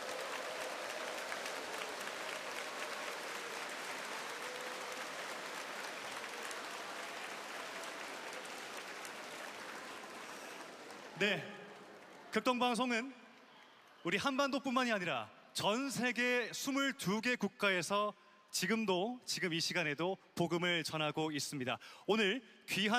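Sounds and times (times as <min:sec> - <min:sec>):
audience applause: 0:00.0 - 0:14.1
speech: 0:11.2 - 0:11.5, 0:12.4 - 0:13.2, 0:14.0 - 0:22.9.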